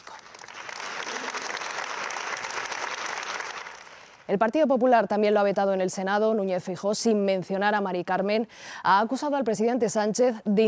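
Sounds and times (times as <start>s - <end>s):
applause in a parliament chamber: 0.0s - 4.2s
speech: 4.3s - 10.6s.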